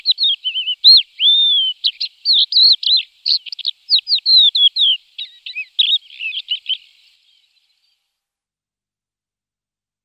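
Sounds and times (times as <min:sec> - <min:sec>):
crested lark singing: 0:00.0 - 0:07.9.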